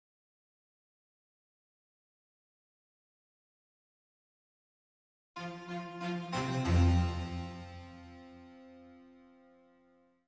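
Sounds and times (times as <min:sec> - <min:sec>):
strings: 0:05.4 - 0:09.9.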